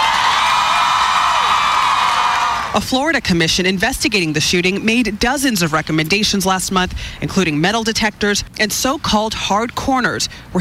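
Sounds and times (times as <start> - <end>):
protesters shouting and whooping: 0.0 - 2.7
large crowd of student protesters at a gun-violence rally in Washington, D.C.: 0.0 - 2.8
speech: 2.8 - 10.6.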